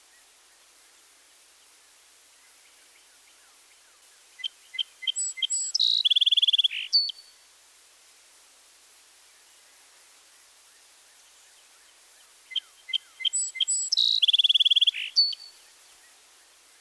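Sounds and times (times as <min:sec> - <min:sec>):
red-winged blackbird calls: 0:04.4 - 0:07.2, 0:12.5 - 0:15.6.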